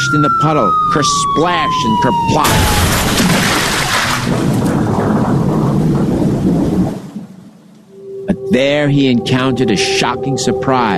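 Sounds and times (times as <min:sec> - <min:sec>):
speech: 0:00.1 - 0:03.5, 0:08.5 - 0:10.9
wind gusts: 0:00.1 - 0:10.9
pounding rain: 0:01.7 - 0:08.0.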